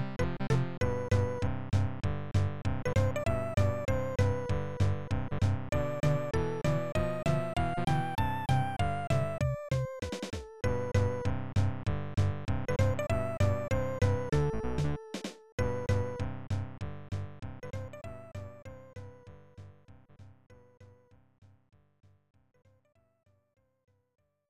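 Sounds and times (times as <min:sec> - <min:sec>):
level game music: 0:00.0 - 0:19.3.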